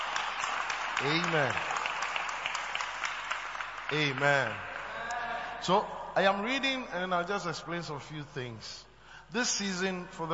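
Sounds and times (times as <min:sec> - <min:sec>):
audience clapping: 0:00.0 - 0:05.4
speech: 0:01.0 - 0:01.7, 0:03.9 - 0:04.7, 0:05.6 - 0:10.3.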